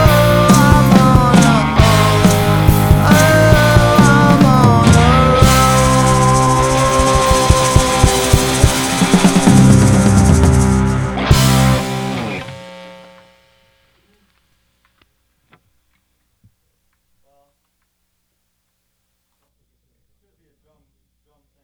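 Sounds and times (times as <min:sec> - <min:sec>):
maraca shaking: 0:00.0 - 0:12.2
vocals: 0:00.0 - 0:12.4.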